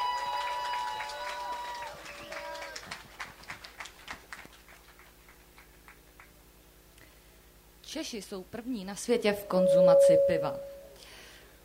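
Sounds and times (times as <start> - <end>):
audience applause: 0.0 - 6.0
speech: 7.9 - 10.7.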